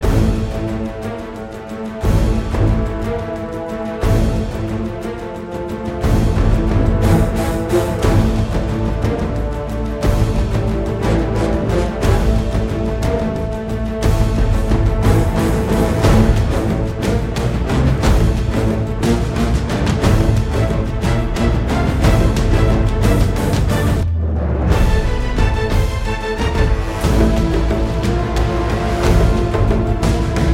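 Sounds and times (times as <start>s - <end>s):
boss battle game music: 0.0s - 30.5s.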